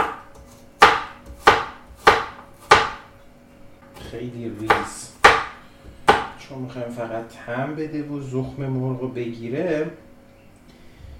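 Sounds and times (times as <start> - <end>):
chopping garlic cloves with a knife: 0.0 - 3.1, 4.6 - 6.4
speech: 4.1 - 5.2, 6.5 - 10.0.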